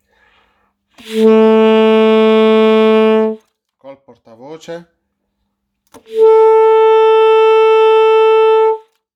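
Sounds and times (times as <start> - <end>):
saxophone playing F sharp or G flat: 1.0 - 3.4, 6.0 - 9.0.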